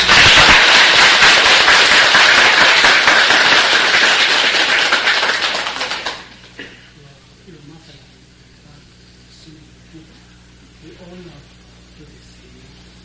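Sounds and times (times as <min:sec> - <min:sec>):
crowd clapping: 0:00.0 - 0:06.6.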